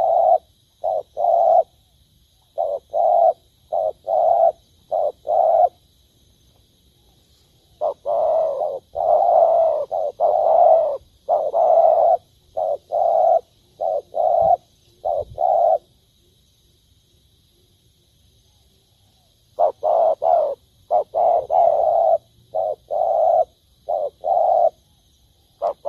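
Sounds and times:
spotted dove cooing: 0.0s - 1.8s, 2.5s - 5.8s, 7.8s - 15.9s, 19.6s - 24.9s, 25.6s - 25.8s.

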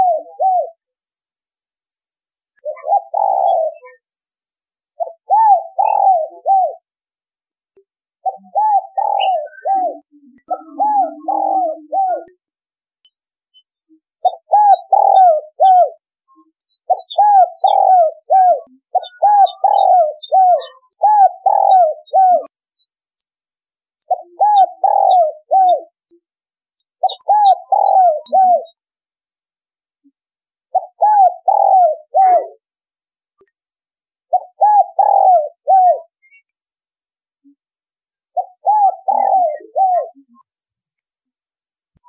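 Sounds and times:
spotted dove cooing: 0.0s - 0.8s, 2.6s - 4.0s, 5.0s - 6.9s, 8.2s - 12.3s, 14.2s - 16.0s, 16.9s - 22.5s, 24.1s - 25.9s, 27.0s - 28.8s, 30.7s - 32.6s, 34.3s - 36.1s, 38.4s - 40.3s
small birds chirping: 0.0s - 2.0s, 2.6s - 4.2s, 5.0s - 6.9s, 7.8s - 12.4s, 13.0s - 26.2s, 26.8s - 28.9s, 30.0s - 32.6s, 34.3s - 36.7s, 38.3s - 41.3s.

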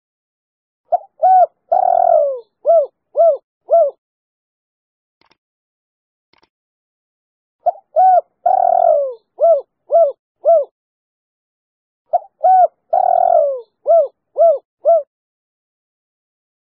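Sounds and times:
spotted dove hooting: 0.9s - 4.0s, 7.6s - 10.7s, 12.1s - 15.1s.

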